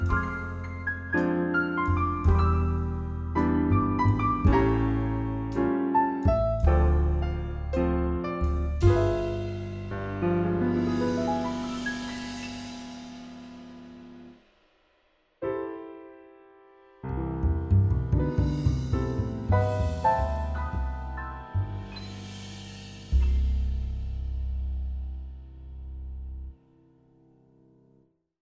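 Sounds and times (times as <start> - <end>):
jazz music in a restaurant: 0.0 - 14.4, 17.1 - 25.3.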